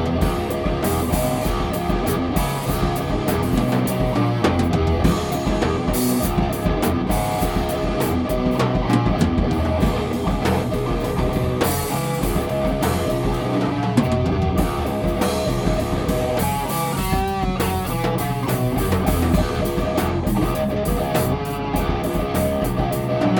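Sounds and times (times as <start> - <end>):
sliced riff: 0.0 - 23.3.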